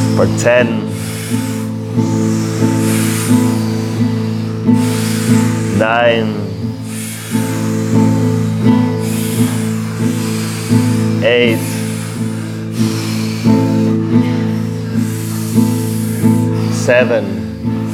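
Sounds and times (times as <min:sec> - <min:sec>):
enthusiastic panting breathing: 0:00.0 - 0:17.9
speech: 0:00.2 - 0:02.2, 0:05.8 - 0:06.4, 0:11.2 - 0:11.7, 0:16.9 - 0:17.4.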